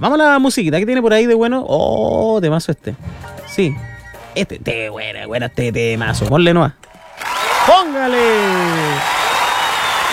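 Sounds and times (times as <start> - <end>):
speech: 0.0 - 9.2
applause: 7.0 - 10.1.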